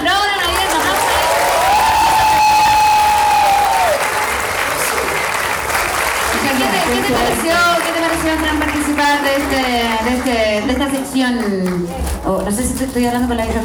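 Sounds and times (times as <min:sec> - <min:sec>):
cheering: 0:00.0 - 0:10.2
loud audience applause: 0:00.0 - 0:10.2
speech: 0:09.3 - 0:13.6.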